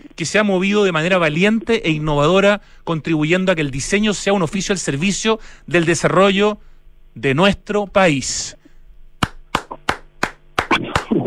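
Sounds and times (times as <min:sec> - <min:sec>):
speech: 0:00.2 - 0:08.6
one person clapping hands: 0:09.2 - 0:11.2.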